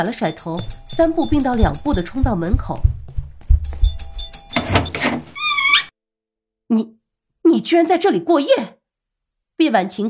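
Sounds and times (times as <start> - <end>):
doorbell ringing: 0.0 - 2.6, 3.6 - 5.7
speech: 0.0 - 3.0, 6.7 - 7.0, 7.6 - 8.8, 9.6 - 10.0
dull thumps: 0.5 - 5.0.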